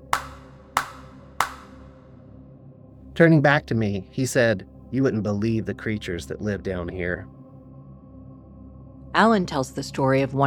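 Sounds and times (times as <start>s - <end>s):
loud hand claps: 0.0s - 2.0s
speech: 3.2s - 7.4s, 9.2s - 10.4s.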